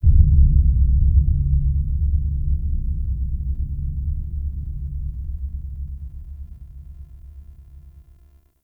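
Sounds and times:
deep low-frequency rumble effect: 0.0 - 8.4.

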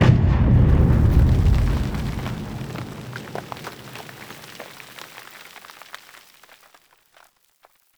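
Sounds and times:
battle ambient tunnel rumble: 0.0 - 4.3.

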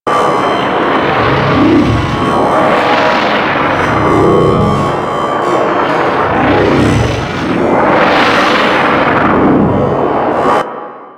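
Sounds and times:
energy core loop: 0.1 - 10.6.

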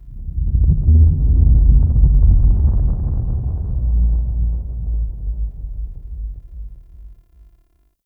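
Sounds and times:
deep earth rumble: 0.0 - 7.6.

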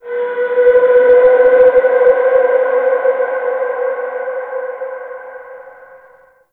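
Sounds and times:
landscape ambient texture: 0.0 - 6.4.

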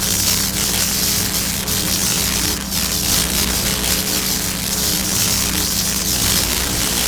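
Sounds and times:
fuse box electric hum: 0.0 - 7.0.

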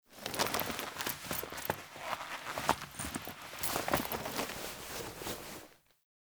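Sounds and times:
cloth movement: 0.0 - 5.8.

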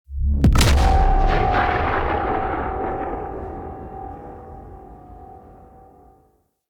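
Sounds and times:
dropship warp-in boom: 0.0 - 6.2.

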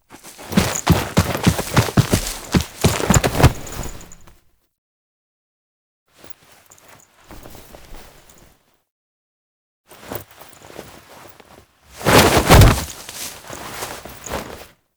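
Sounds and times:
foley sounds: 0.2 - 3.7, 12.0 - 14.0.

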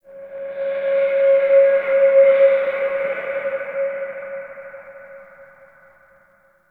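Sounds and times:
dark wind blowing: 0.1 - 5.9.

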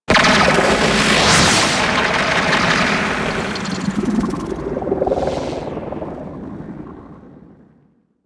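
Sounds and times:
transference switch sound effect: 0.1 - 5.9.

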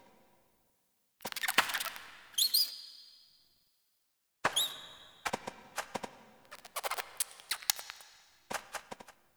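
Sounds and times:
rat: 1.2 - 3.3, 4.5 - 5.9, 6.5 - 9.2.

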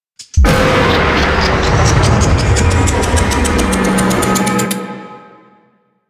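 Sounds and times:
nuclear explosion: 0.4 - 4.5.

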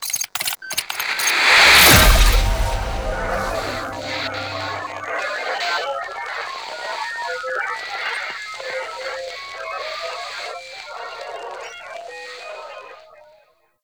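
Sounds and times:
title card end music sting: 1.0 - 5.2.

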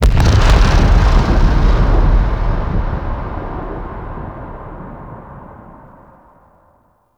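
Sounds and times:
final explosion: 0.0 - 6.7.

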